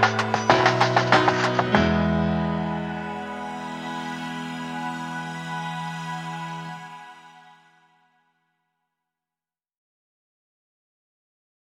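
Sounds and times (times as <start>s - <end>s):
background music: 0.0s - 8.2s.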